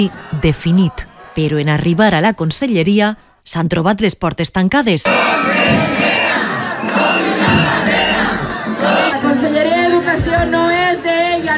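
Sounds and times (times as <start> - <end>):
large protest crowd chanting and shouting in the street: 0.0 - 1.8, 5.0 - 11.5
speech: 0.0 - 6.0
whistles: 5.1 - 8.5.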